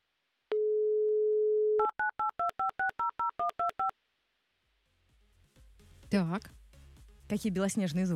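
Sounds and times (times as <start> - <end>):
telephone dial tone: 0.5 - 3.9
speech: 6.1 - 6.6, 7.3 - 8.1.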